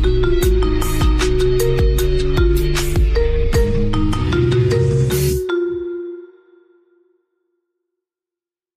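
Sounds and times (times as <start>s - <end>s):
marimba remix: 0.0s - 6.7s.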